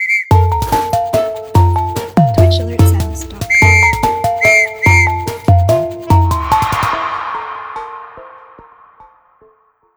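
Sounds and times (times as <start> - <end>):
trap beat: 0.3 - 7.2.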